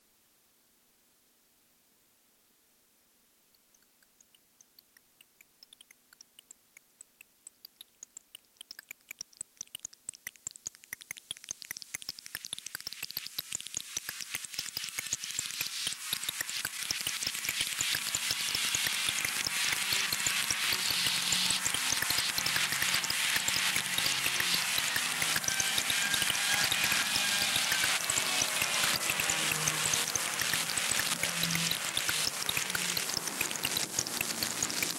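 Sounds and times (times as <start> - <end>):
rain: 11.5 - 34.9.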